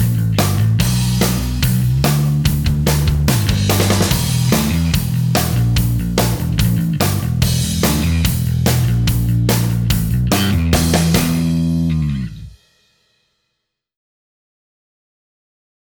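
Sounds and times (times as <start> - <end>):
rhythm guitar: 0.0 - 12.6.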